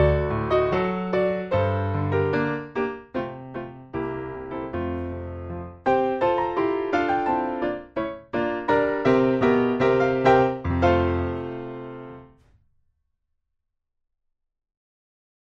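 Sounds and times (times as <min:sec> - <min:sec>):
piano playback: 0:00.0 - 0:12.4.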